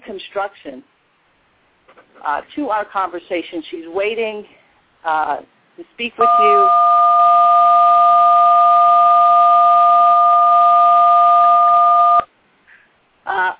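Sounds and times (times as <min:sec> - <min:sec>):
speech: 0:00.1 - 0:01.0, 0:02.0 - 0:07.0
loud two-pitched telephone dialing tone: 0:06.2 - 0:12.3.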